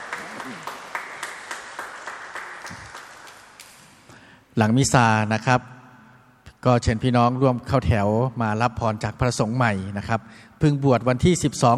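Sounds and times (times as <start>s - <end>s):
audience applauding: 0.0s - 4.0s
speech: 4.6s - 5.8s, 6.6s - 11.7s.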